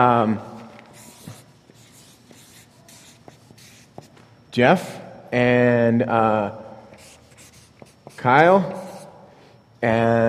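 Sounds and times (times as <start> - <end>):
speech: 0.0 - 0.5, 4.6 - 6.6, 8.2 - 8.8, 9.8 - 10.2
pen strokes writing names by hand: 1.0 - 4.1, 7.0 - 9.1.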